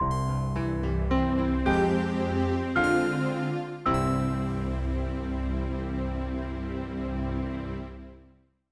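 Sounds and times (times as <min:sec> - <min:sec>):
music sting: 0:00.1 - 0:06.8.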